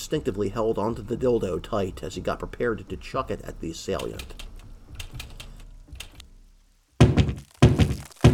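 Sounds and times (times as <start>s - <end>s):
speech: 0.1s - 4.4s
pounding on a door: 7.0s - 8.3s.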